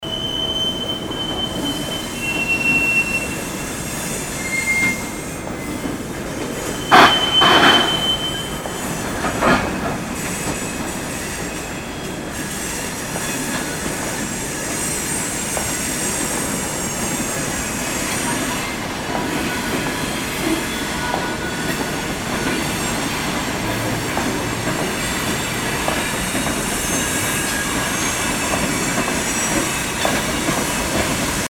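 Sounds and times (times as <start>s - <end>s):
railway: 0.0s - 31.4s.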